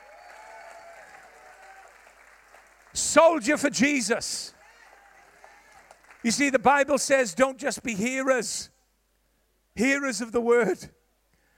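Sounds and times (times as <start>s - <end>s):
audience cheering: 0.0s - 3.6s, 4.5s - 6.5s
speech: 3.0s - 4.6s, 6.2s - 8.8s, 9.8s - 11.0s.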